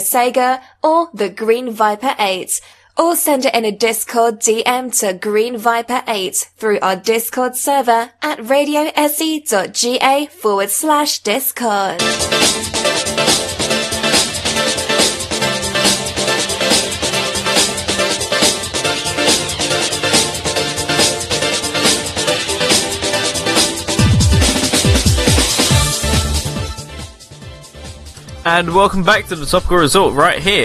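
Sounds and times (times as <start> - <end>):
speech: 0.1 - 13.6, 28.5 - 30.6
remix of a track from an arcade racing game: 12.0 - 30.6.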